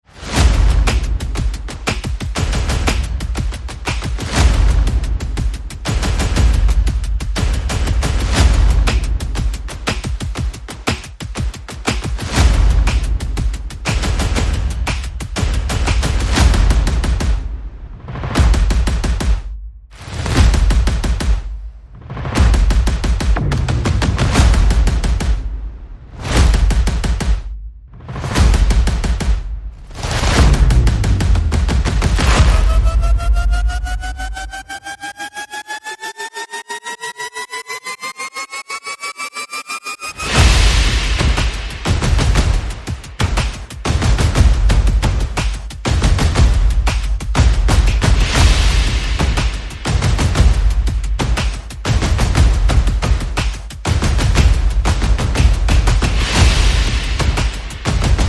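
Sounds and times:
percussion: 0.0s - 58.2s
sound effects: 29.9s - 41.8s.

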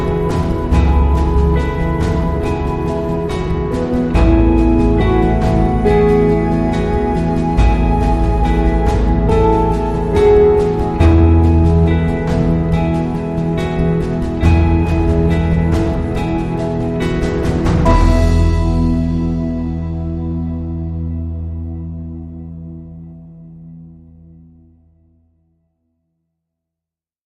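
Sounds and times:
percussion without triangle: 0.0s - 21.1s.

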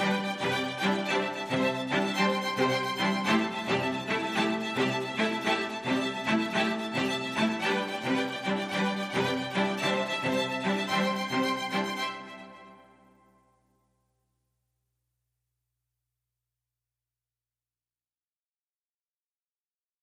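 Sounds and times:
strings: 0.0s - 13.4s.

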